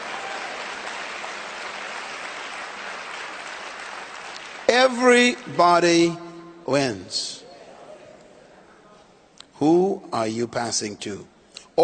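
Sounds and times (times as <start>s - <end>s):
audience clapping: 0.0s - 5.5s
speech: 4.7s - 7.4s, 9.6s - 11.8s.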